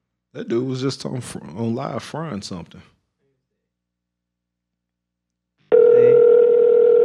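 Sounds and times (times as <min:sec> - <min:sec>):
speech: 0:00.4 - 0:03.0
telephone call tone: 0:05.7 - 0:07.0.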